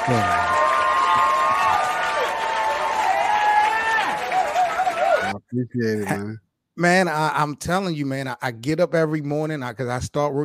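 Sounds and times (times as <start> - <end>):
round of applause: 0.0 - 5.4
speech: 0.1 - 0.4, 5.5 - 10.4.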